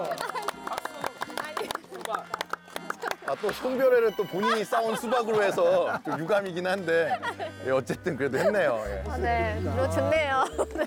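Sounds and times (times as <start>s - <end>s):
laughter: 0.0s - 1.2s, 4.1s - 10.8s
a few people clapping by hand: 0.0s - 3.9s
voices talking and murmuring: 0.0s - 10.8s
speech: 3.3s - 10.8s.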